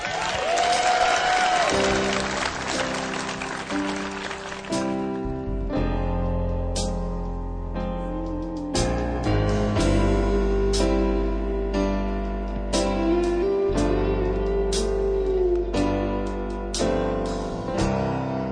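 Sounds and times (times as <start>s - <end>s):
audience applause welcoming a young baritone singer: 0.0s - 5.2s
instrumental music: 0.6s - 18.4s.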